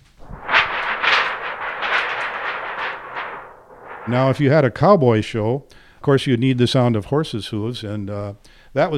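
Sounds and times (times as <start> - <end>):
thunder effect from shaken aluminum sheet: 0.0 - 5.0
speech: 4.1 - 8.9.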